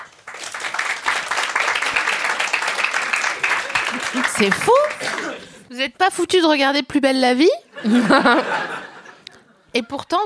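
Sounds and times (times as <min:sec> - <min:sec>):
audience applause: 0:00.0 - 0:05.6
laughter: 0:03.1 - 0:05.7, 0:07.7 - 0:09.7
speech: 0:04.1 - 0:05.1, 0:05.7 - 0:08.8, 0:09.8 - 0:10.2.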